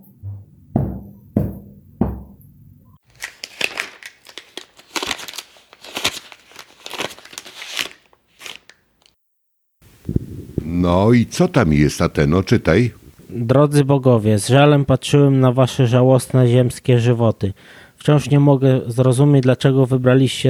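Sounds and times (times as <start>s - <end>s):
golden envelope being opened, paper crinkling: 3.0s - 9.1s
speech: 10.9s - 20.4s.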